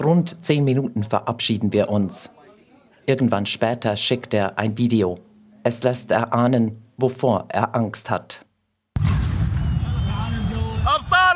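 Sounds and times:
speech: 0:00.0 - 0:02.4, 0:03.1 - 0:08.4
gunfire at surrounded protesters in Baghdad in a phone video: 0:09.0 - 0:10.0
people shouting: 0:10.1 - 0:11.3.

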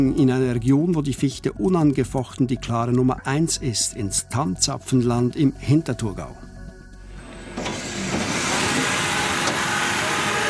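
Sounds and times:
speech: 0:00.0 - 0:06.5
sawmill machinery droning and whirring: 0:07.0 - 0:10.4
sawmill motor hum: 0:07.1 - 0:10.4
mechanical clunks as heavy logs are hoisted onto a conveyor: 0:07.2 - 0:10.4.

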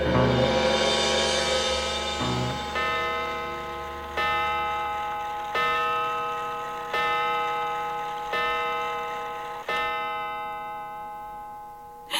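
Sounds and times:
clock striking midnight: 0:00.1 - 0:12.1.

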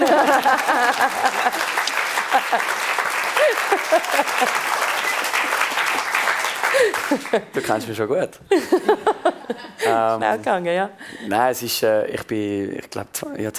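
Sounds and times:
speech: 0:00.0 - 0:01.4, 0:03.9 - 0:04.8, 0:07.3 - 0:09.2, 0:09.9 - 0:13.5
laughter: 0:00.0 - 0:05.0, 0:06.6 - 0:07.9, 0:08.5 - 0:10.1
audience applause: 0:00.0 - 0:07.6.

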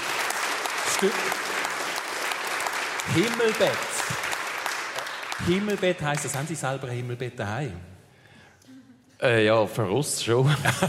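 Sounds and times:
audience applause after a song: 0:00.0 - 0:06.7
speech: 0:01.0 - 0:01.6, 0:03.1 - 0:04.1, 0:05.5 - 0:07.9, 0:09.2 - 0:10.8
laughter: 0:10.4 - 0:10.8.

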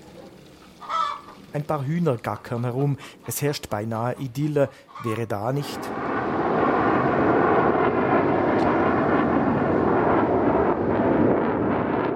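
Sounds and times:
speech: 0:01.5 - 0:06.0
Swiss Army F/A-18 fighter jet taking off in Payerne: 0:05.5 - 0:12.1.

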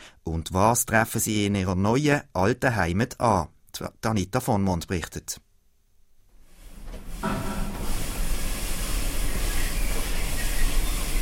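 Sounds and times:
speech: 0:00.2 - 0:05.4
zookeeper hosing down spider monkey enclosure: 0:06.4 - 0:11.1.

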